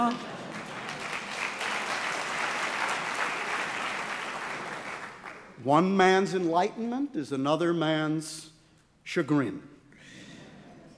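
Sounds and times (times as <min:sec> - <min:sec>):
speech: 0:00.0 - 0:00.3, 0:05.6 - 0:08.5, 0:09.1 - 0:09.7
audience applause: 0:00.0 - 0:05.6.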